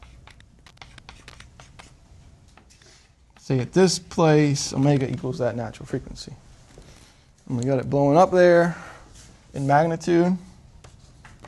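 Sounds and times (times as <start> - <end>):
marker or chalk scratching a line on a lecture board: 0.0 - 2.0
low hum: 0.0 - 11.4
speech: 3.5 - 6.5, 7.5 - 8.9, 9.5 - 10.5.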